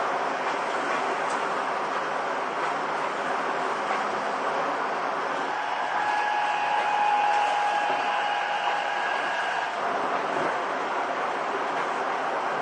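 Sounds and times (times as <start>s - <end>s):
Seibu 6000 series train running: 0.0s - 12.6s
thin even whine: 5.2s - 10.6s.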